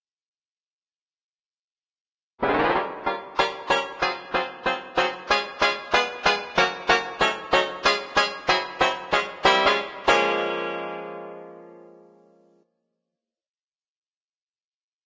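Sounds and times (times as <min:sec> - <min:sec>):
banjo duet: 0:02.4 - 0:11.9.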